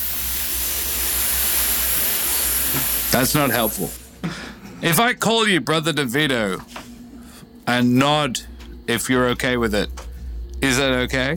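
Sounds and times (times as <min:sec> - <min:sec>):
voice imitating a sibilant hiss: 0:00.0 - 0:04.2
speech: 0:03.2 - 0:06.8, 0:07.7 - 0:10.0, 0:10.6 - 0:11.3.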